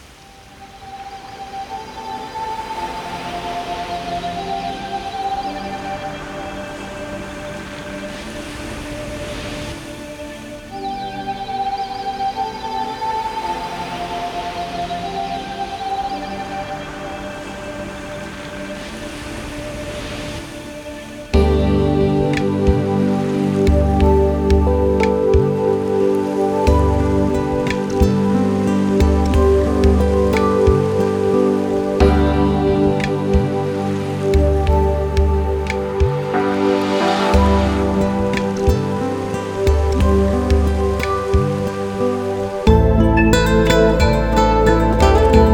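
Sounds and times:
oceanic breeze: 0:00.0 - 0:45.5.

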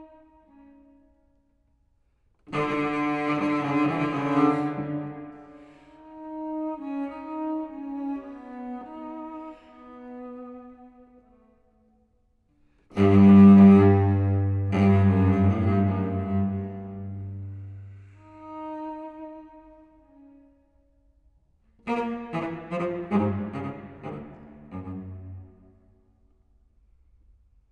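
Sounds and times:
solo cello playing a march allegro: 0:02.5 - 0:11.4, 0:12.9 - 0:20.5, 0:21.8 - 0:26.0.

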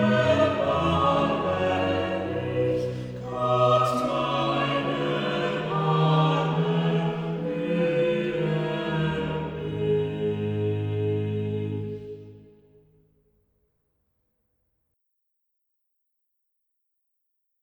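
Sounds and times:
chorus singing a chorale cantata: 0:00.0 - 0:12.5.

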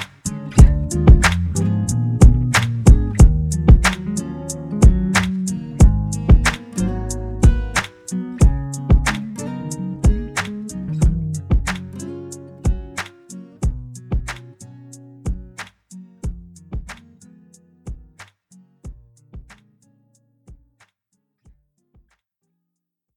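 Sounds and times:
instrumental remix: 0:00.0 - 0:14.7.

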